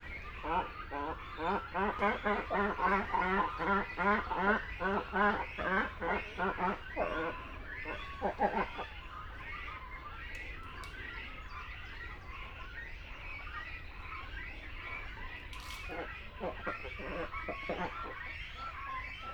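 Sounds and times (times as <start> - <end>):
great cormorants croaking: 0.4 - 9.0, 15.8 - 19.3.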